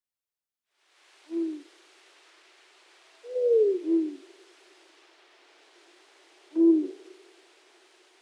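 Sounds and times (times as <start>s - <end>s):
Long-eared owl giving low short hoots: 1.3s - 1.7s, 3.1s - 4.4s, 6.5s - 7.3s.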